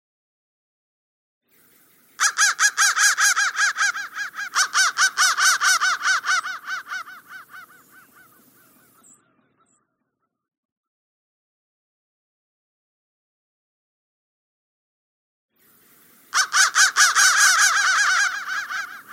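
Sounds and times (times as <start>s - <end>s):
crow cawing: 2.2s - 9.8s, 16.3s - 19.1s.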